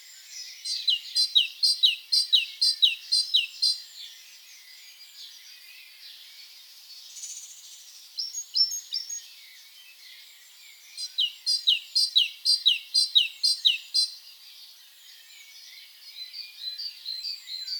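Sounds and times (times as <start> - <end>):
great tit singing: 0.0 - 6.6, 8.2 - 17.7.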